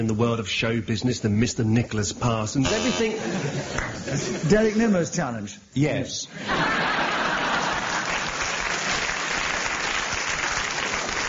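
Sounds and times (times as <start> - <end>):
speech: 0.0 - 6.9
laughter: 3.0 - 4.7, 6.3 - 8.4
studio audience clapping: 3.8 - 4.0, 6.6 - 11.2.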